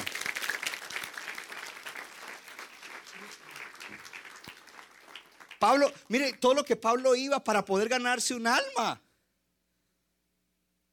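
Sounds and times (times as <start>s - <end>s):
audience applause: 0.0s - 6.5s
speech: 5.6s - 9.0s.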